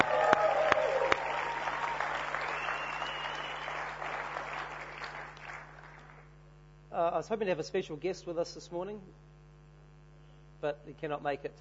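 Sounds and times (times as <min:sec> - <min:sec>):
morning gathering audience applause: 0:00.0 - 0:06.3
speech: 0:07.1 - 0:09.3, 0:10.6 - 0:11.5.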